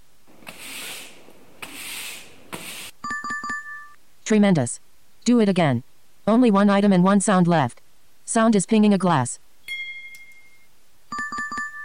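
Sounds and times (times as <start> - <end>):
sweeping the floor: 0.4 - 2.9
speech: 4.3 - 9.4.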